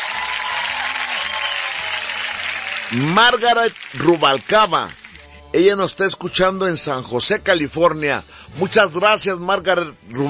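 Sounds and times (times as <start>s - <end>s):
applause: 0.0s - 5.3s
speech: 2.9s - 10.2s.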